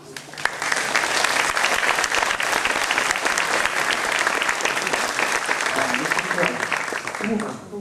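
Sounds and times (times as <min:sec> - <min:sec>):
audience clapping: 0:00.0 - 0:07.7.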